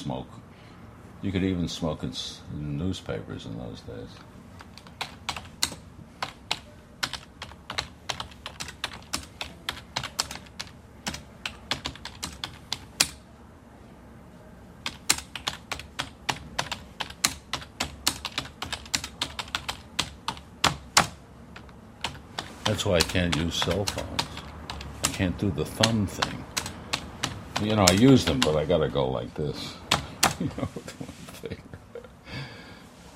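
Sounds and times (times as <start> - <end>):
speech: 0.0 - 0.5, 1.2 - 4.3, 22.8 - 24.3, 25.2 - 26.5, 27.6 - 29.8, 30.4 - 30.9
typewriters clattering in a newsroom: 4.6 - 13.2, 14.9 - 21.1, 22.0 - 25.2, 25.8 - 28.6.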